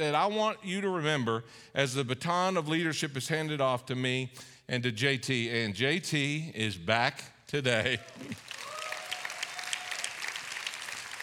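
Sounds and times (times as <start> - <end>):
speech: 0.0 - 8.4
audience applause: 7.9 - 11.2.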